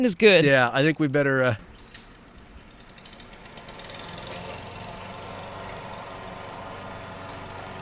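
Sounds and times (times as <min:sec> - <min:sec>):
speech: 0:00.0 - 0:01.7
lawnmower engine running in neighbor's yard: 0:01.6 - 0:07.8.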